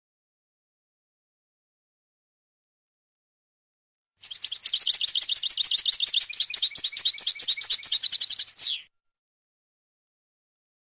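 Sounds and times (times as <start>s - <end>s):
European goldfinch twittering: 4.2s - 8.9s.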